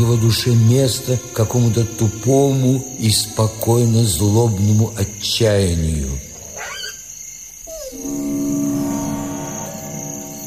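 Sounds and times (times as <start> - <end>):
speech: 0.0 - 6.3
dog thin moaning squeal and whine: 6.5 - 8.5.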